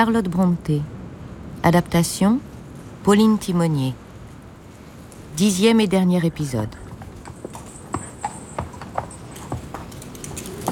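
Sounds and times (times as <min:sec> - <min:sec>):
speech: 0:00.0 - 0:01.0, 0:01.6 - 0:04.0, 0:05.4 - 0:06.8
horse hooves clip-clopping: 0:06.7 - 0:10.7.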